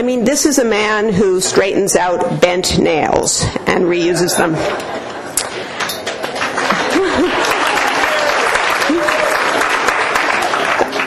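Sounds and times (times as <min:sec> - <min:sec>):
speech: 0:00.0 - 0:05.1
laughter: 0:04.4 - 0:10.8
loud sustained audience applause: 0:05.8 - 0:11.0
crowd voices and whoops: 0:06.8 - 0:10.8.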